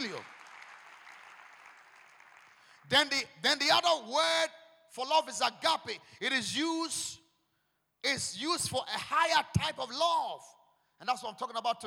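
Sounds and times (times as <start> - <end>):
audience clapping hands: 0.0 - 2.9
speech: 2.9 - 7.2, 8.0 - 11.8.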